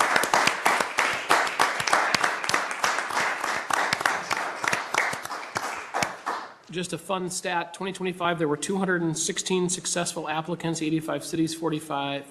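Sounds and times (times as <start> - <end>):
crowd applauding: 0.0 - 6.6
speech: 6.7 - 12.2.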